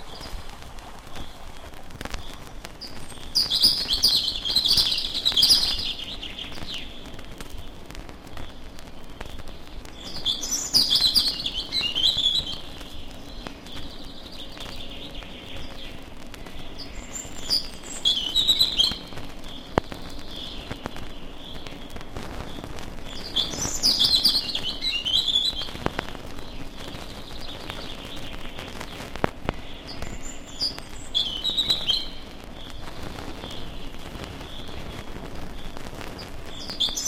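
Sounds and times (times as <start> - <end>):
chaffinch and robin singing in the distance: 0.0 - 37.0.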